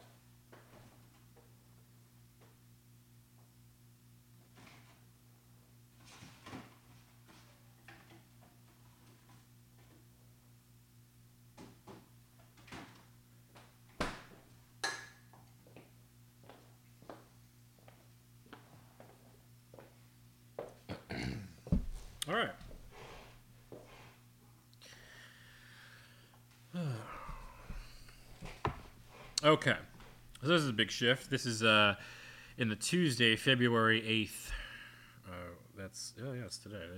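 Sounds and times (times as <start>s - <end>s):
footsteps walking to fridge: 21.7s - 24.0s, 27.2s - 31.6s
speech: 29.4s - 34.4s, 35.9s - 36.9s.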